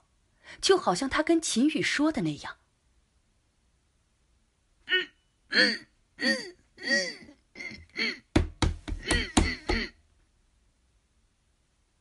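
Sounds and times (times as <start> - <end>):
speech: 0.6 - 2.6, 5.5 - 8.2
knocking from inside a refrigerator: 8.3 - 9.9.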